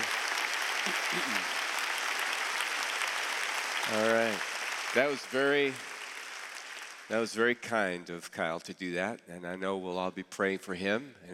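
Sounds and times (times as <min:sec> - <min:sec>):
congregation applause at Wooddale Church welcoming a pastor: 0:00.0 - 0:07.6
speech: 0:03.9 - 0:05.9, 0:07.1 - 0:11.3.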